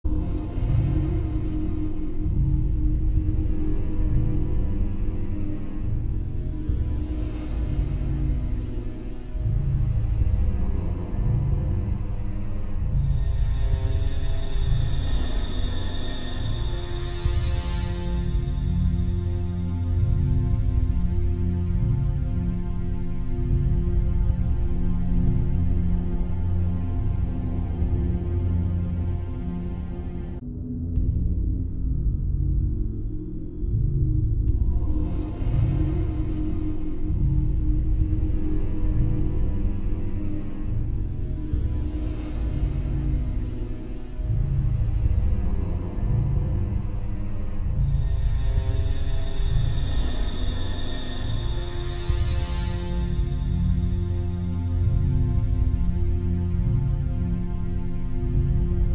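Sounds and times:
ambient music: 0.0 - 58.9.

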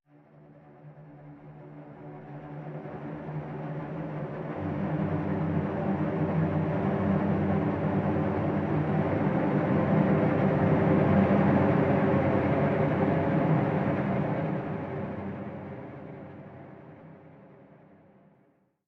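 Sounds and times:
jungle suspense strings: 1.6 - 17.2.

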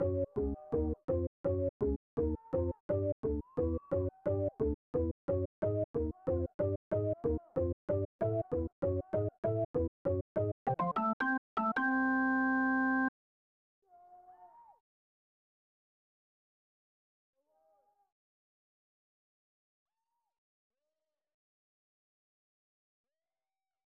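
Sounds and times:
organ music: 0.0 - 13.1.

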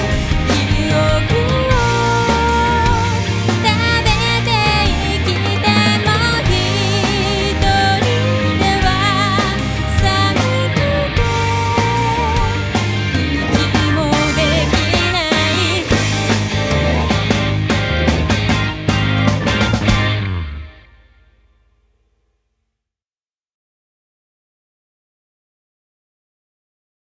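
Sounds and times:
lunatic trance music: 0.0 - 20.6.

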